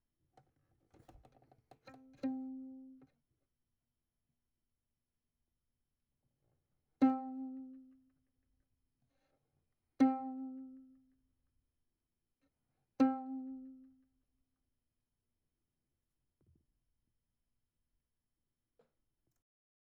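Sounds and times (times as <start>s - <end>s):
violin: 0.9s - 3.1s, 7.0s - 8.2s, 10.0s - 11.1s, 13.0s - 14.0s.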